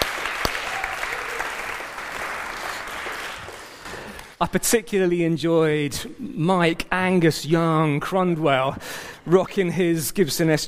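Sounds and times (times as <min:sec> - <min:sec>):
audience applauding: 0:00.0 - 0:04.4
speech: 0:04.4 - 0:10.6.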